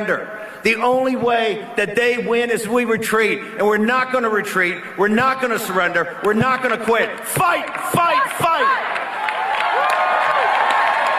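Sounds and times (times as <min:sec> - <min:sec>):
speech: 0:00.0 - 0:09.0
political rally crowd clapping and cheering: 0:06.2 - 0:11.1.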